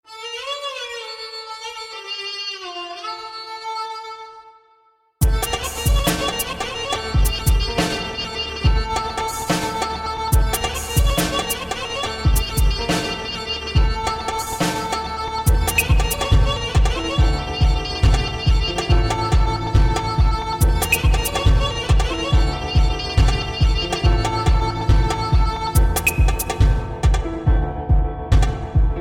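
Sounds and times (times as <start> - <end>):
Persian music beats: 5.2 - 29.0.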